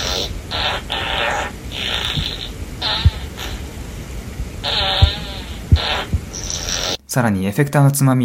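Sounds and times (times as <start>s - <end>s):
fart sound effects from a small toilet speaker: 0.0s - 4.0s, 4.6s - 7.0s
soft low thumps: 2.0s - 6.7s
speech: 7.1s - 8.2s.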